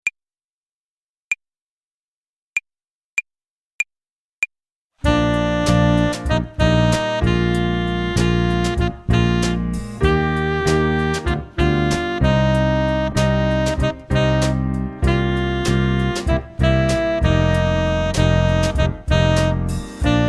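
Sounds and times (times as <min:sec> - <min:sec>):
tenor saxophone jazz club play-along: 0:05.0 - 0:20.2.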